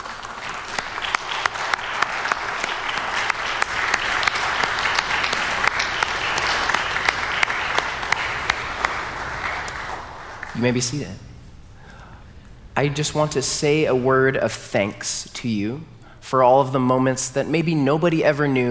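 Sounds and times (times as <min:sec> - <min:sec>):
audience applause: 0:00.0 - 0:11.0
speech: 0:10.6 - 0:11.3, 0:12.8 - 0:18.6.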